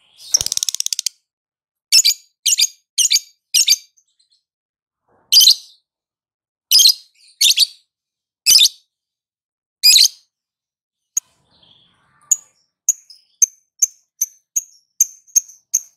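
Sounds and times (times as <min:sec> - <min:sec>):
lovebird chirping, trilling and ticking: 0:00.0 - 0:01.2, 0:01.9 - 0:04.4, 0:06.7 - 0:07.8, 0:08.5 - 0:08.9, 0:09.8 - 0:10.2, 0:11.2 - 0:15.9.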